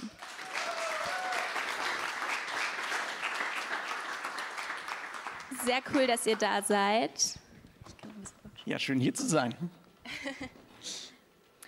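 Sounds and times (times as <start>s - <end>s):
audience applause: 0.0s - 6.7s
speech: 5.6s - 7.4s, 8.7s - 10.6s.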